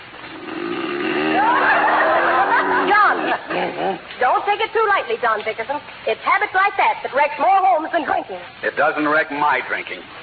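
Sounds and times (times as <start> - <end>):
man snoring: 0.4 - 1.4
laughter: 1.3 - 3.6
speech: 4.6 - 10.2.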